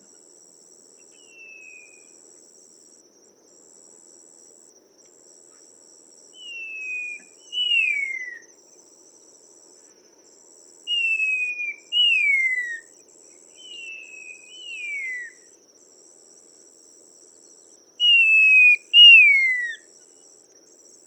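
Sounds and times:
Chinese babax whistled calls: 6.4 - 8.4, 10.9 - 12.8, 13.6 - 15.3, 18.0 - 19.8.

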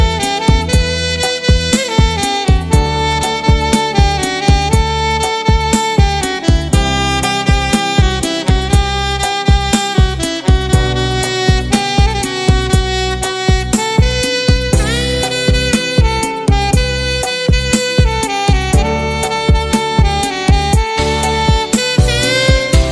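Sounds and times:
saxophone: 0.0 - 22.9.

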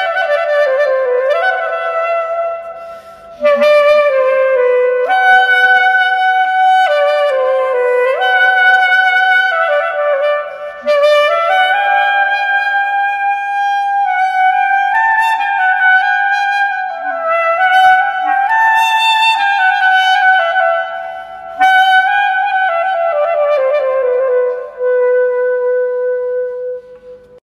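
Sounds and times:
Turkish flute: 0.0 - 27.3.

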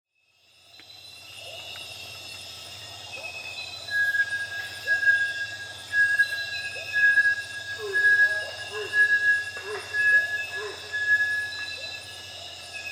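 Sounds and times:
Bartlett's tinamou whistling: 3.2 - 12.8.

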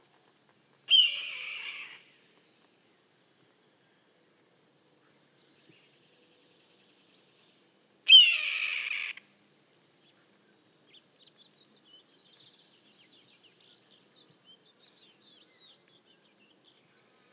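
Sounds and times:
red-tailed hawk giving hoarse raspy screams: 0.9 - 2.0, 8.1 - 9.2.

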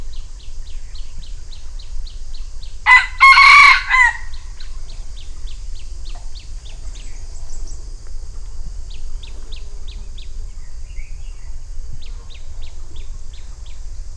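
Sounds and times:
red junglefowl crowing: 2.8 - 4.7.

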